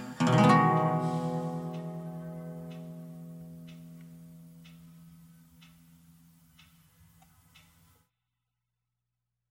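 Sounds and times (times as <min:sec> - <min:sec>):
waltz music: 0:00.2 - 0:03.5.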